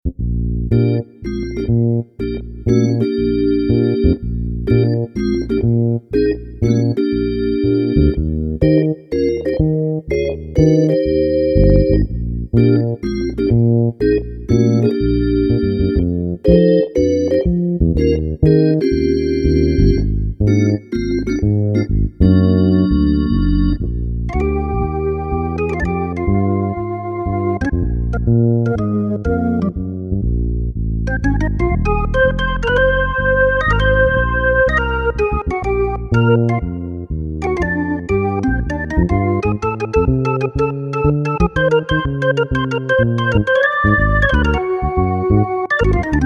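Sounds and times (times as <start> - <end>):
organ: 0.7 - 30.2, 31.1 - 46.2.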